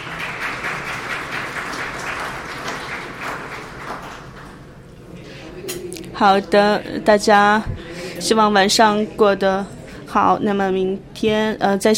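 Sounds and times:
crowd clapping: 0.0 - 4.8
speech: 6.2 - 11.9.

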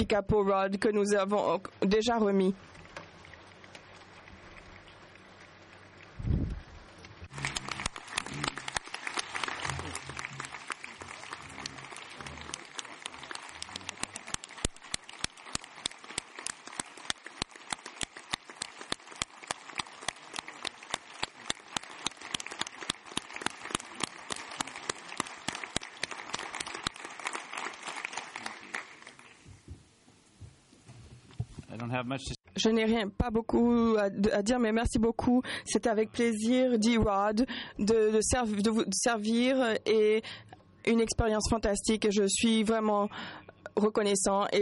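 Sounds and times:
speech: 0.0 - 3.0, 32.0 - 44.5
audience applause: 7.2 - 29.4.

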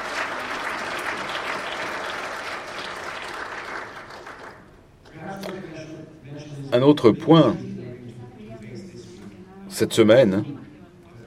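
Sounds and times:
audience applause: 0.0 - 4.7
speech: 6.8 - 7.6, 9.8 - 10.7.

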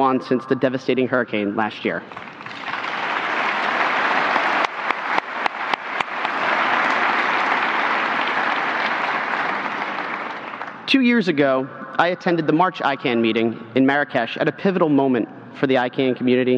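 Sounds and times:
speech: 0.0 - 2.6, 10.9 - 16.5
conference audience applause: 2.2 - 10.8.

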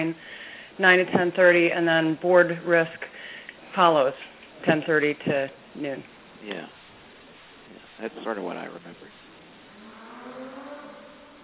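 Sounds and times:
speech: 0.0 - 3.1, 3.7 - 6.8, 8.0 - 9.2
motorcycle engine running: 8.7 - 11.4.

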